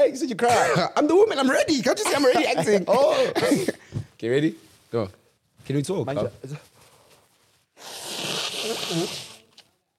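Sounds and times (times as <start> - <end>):
speech: 0.0 - 6.7, 8.9 - 9.2
person blowing nose: 7.8 - 9.6.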